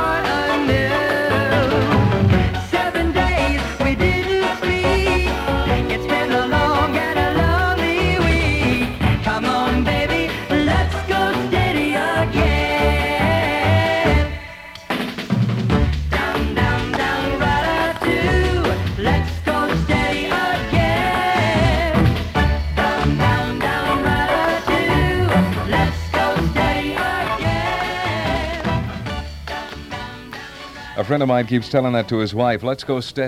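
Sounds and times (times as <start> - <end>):
pop song with full band: 0.0 - 31.1
speech: 31.1 - 33.2.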